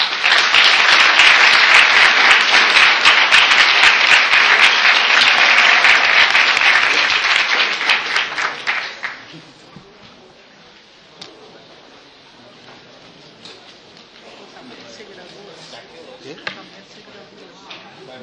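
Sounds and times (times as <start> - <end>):
audience applause: 0.0 - 9.4.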